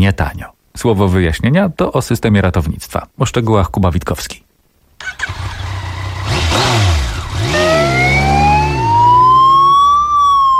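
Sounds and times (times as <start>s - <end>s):
speech: 0.0s - 4.4s
motorcycle ambulance engine revving and droning: 5.0s - 9.8s
motorcycle ambulance siren in Poland wailing: 7.3s - 10.5s.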